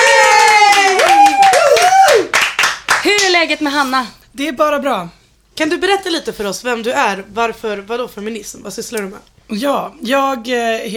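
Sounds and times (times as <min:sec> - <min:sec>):
voices whooping and cheering: 0:00.0 - 0:02.4
small group clapping: 0:00.0 - 0:03.4
speech: 0:03.5 - 0:10.9.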